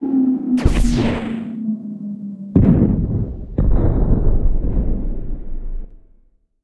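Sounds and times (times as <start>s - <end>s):
explosion: 0.6s - 1.6s, 2.5s - 6.2s.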